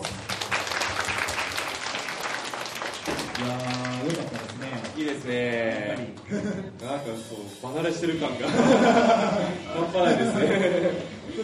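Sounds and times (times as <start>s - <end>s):
audience applause at in-store live show: 0.0s - 6.5s
speech: 3.4s - 3.7s, 5.0s - 11.4s
laughter: 6.1s - 6.9s, 8.1s - 11.4s.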